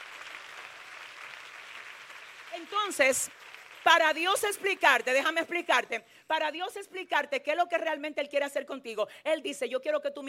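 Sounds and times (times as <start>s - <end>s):
faint applause from a church congregation during a sermon: 0.0s - 4.9s
speech: 2.6s - 10.2s.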